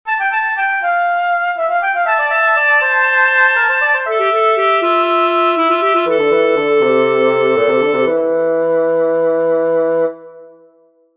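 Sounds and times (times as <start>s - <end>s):
unaccompanied fugato: 0.1s - 10.7s.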